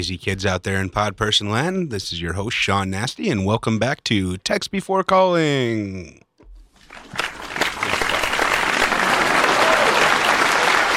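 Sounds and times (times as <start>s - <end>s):
speech: 0.0s - 6.3s
audience applause from a large crowd: 6.8s - 10.9s.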